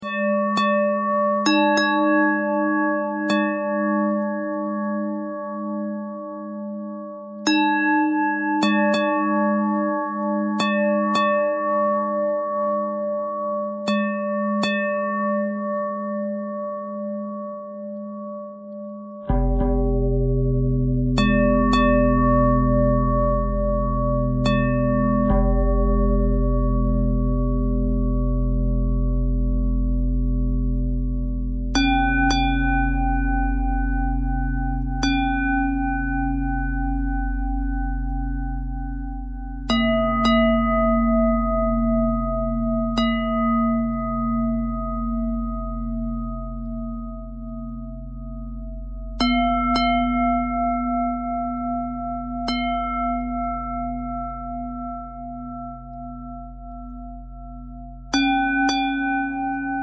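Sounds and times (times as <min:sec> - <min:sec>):
bell: 0:00.0 - 0:59.8.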